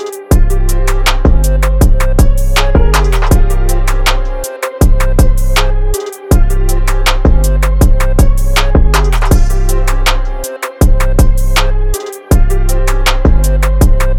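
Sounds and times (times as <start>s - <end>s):
trap music: 0.0s - 14.1s.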